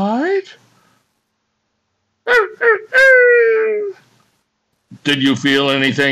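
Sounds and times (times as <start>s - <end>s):
speech: 0.0s - 0.6s, 2.3s - 4.0s, 5.0s - 6.1s
person imitating coyote yips and howl: 2.3s - 4.0s.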